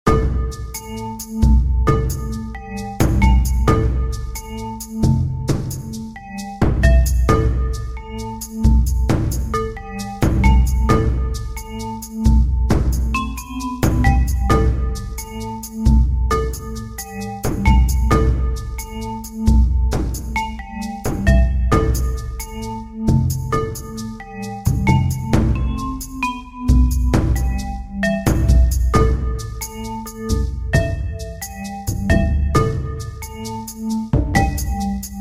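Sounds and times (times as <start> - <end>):
jungle ambience: 0.5 - 35.1.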